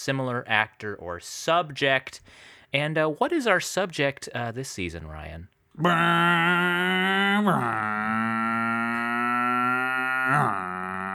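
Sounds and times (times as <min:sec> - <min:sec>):
speech: 0:00.0 - 0:08.3, 0:10.3 - 0:10.6
person vocally imitating a car driving away: 0:05.8 - 0:11.1.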